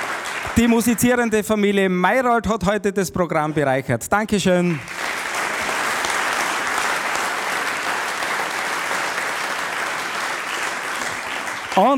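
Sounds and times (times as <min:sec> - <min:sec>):
crowd applause: 0:00.0 - 0:01.0, 0:04.7 - 0:11.9
speech: 0:00.6 - 0:05.0, 0:11.8 - 0:11.9.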